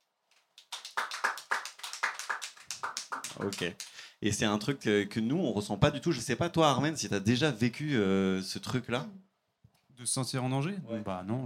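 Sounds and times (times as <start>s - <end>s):
audience clapping: 0.5s - 4.0s
speech: 3.4s - 9.3s, 10.0s - 11.4s.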